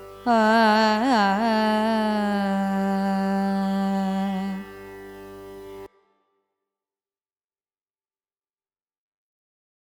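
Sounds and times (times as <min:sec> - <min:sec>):
Carnatic raga music: 0:00.0 - 0:06.4.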